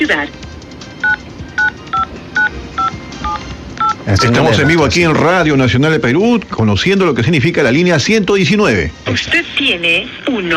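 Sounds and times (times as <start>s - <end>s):
speech: 0.0s - 0.5s, 3.4s - 10.5s
telephone keypad DTMF tones entering a phone number on a voicemail retrieval line: 1.0s - 4.8s.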